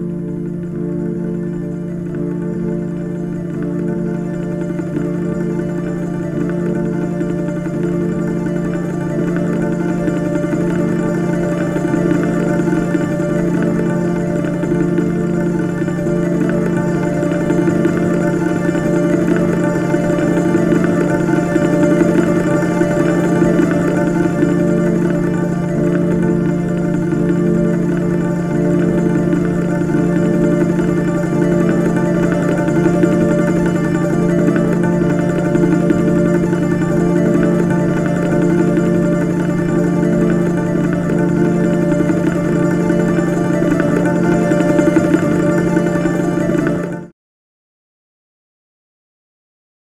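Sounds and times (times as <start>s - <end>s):
ronroco loop: 0.1s - 47.1s.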